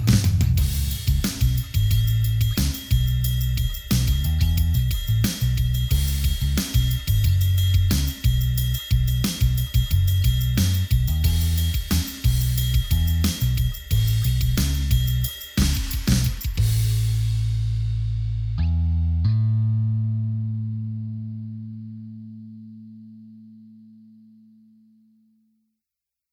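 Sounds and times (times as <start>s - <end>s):
drums: 0.0s - 18.6s
bass: 0.0s - 24.8s.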